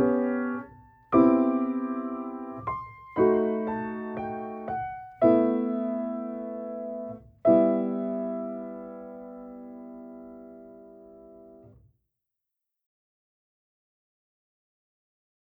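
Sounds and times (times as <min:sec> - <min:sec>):
piano chord and melody combination: 0:00.0 - 0:11.7.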